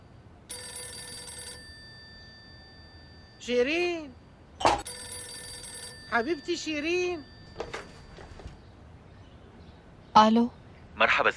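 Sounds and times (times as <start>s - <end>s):
telephone ringing with an electronic bell: 0.0s - 4.0s, 4.6s - 8.7s
speech: 3.4s - 4.9s, 6.1s - 7.3s, 10.2s - 11.3s.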